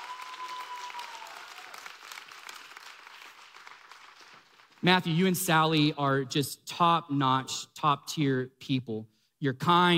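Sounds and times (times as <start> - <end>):
audience applause: 0.0 - 4.8
speech: 4.8 - 9.9.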